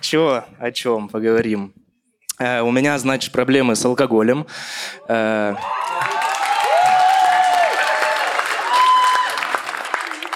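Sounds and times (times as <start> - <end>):
speech: 0.0 - 1.8, 2.4 - 6.1
audience applause: 5.5 - 10.3.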